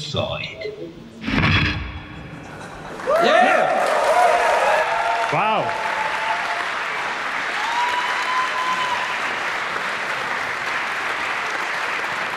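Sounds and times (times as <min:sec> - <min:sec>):
speech: 0:00.1 - 0:01.8
large audience applause: 0:02.5 - 0:12.3.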